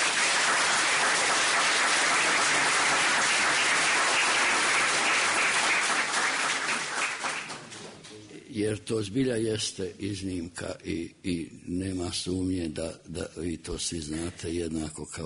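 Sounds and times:
audience applause for a performer: 0:00.0 - 0:07.8
speech: 0:08.6 - 0:15.2.

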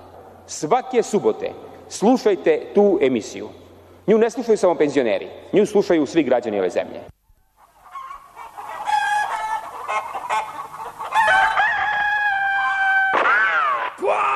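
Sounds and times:
speech: 0:00.5 - 0:07.1
chickens clucking: 0:07.4 - 0:13.0
rooster crowing: 0:07.6 - 0:14.3.

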